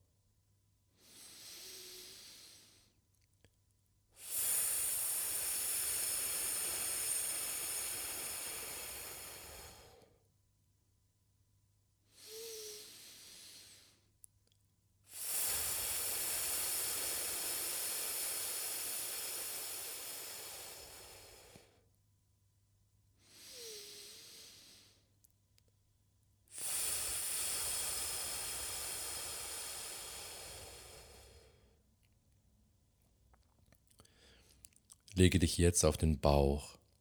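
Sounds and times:
long hissing exhale through the mouth: 1.0 - 3.0, 4.2 - 10.2, 12.2 - 14.1, 15.1 - 21.8, 23.2 - 25.1, 26.5 - 31.8
soft inhale through the nose: 1.0 - 3.0, 4.2 - 10.2, 12.1 - 14.1, 15.1 - 21.8, 23.2 - 25.1, 26.5 - 31.8, 34.0 - 34.7
speech: 35.2 - 36.8.

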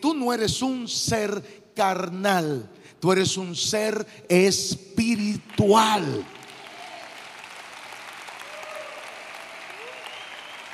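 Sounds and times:
speech: 0.0 - 6.4
audience applause: 6.2 - 10.7.

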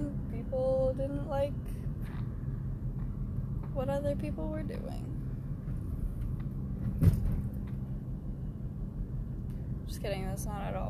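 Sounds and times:
road and engine rumble from inside a moving car: 0.0 - 10.8
speech: 3.8 - 5.2, 10.0 - 10.8
thump: 6.8 - 7.5.

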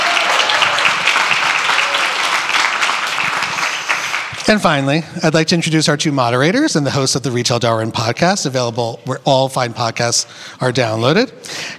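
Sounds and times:
audience applause welcoming panelists at a retail-industry panel event in Boston: 0.0 - 4.5
speech: 4.5 - 11.7.

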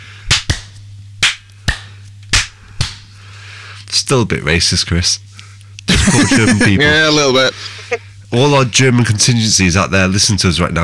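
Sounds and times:
faint steady low hum: 0.0 - 10.8
hand claps for audio sync: 0.3 - 3.1
speech: 4.0 - 5.3, 6.1 - 10.8
laughter: 5.9 - 8.1.

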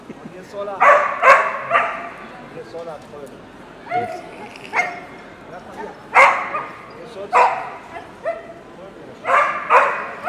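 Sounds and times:
speech: 0.5 - 1.2, 2.6 - 8.3
dog barking: 0.8 - 2.2, 3.9 - 5.1, 5.8 - 8.6, 9.2 - 10.2
dog whimpering: 3.9 - 5.0.

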